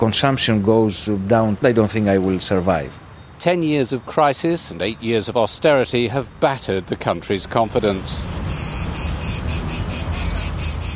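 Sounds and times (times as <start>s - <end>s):
speech: 0.0s - 8.6s
cicadas singing: 3.1s - 10.9s.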